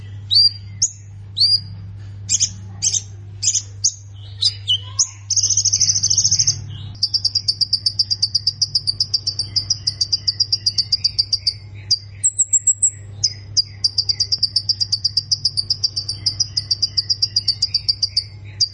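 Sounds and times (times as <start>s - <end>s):
faint low hum: 0.0s - 18.7s
plain prinia ticking trill: 0.0s - 18.7s.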